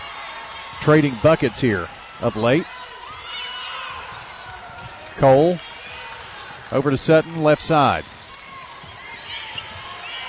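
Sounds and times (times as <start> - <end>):
arena crowd noise: 0.0 - 10.2
speech: 0.8 - 2.8, 5.2 - 5.7, 6.7 - 8.2
basketball dribbled on the court during a women's basketball game: 3.8 - 10.1.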